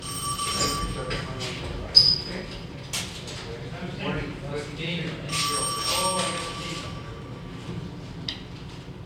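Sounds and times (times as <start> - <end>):
telephone ringing in an office: 0.0 - 1.5, 5.3 - 7.6
office ambience inside: 0.0 - 9.0.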